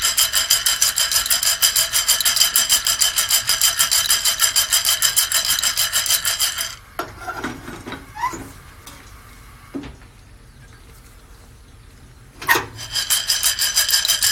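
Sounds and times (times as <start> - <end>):
scattered clicks and scrapes: 0.0 - 8.4, 12.4 - 14.3
Guatemalan SHB coffee beans churning in a roaster: 0.0 - 9.1, 12.4 - 14.3.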